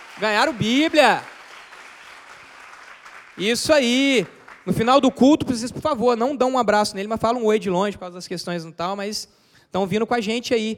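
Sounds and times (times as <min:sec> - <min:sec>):
audience applause: 0:00.0 - 0:04.8
speech: 0:00.2 - 0:01.3, 0:03.4 - 0:10.7.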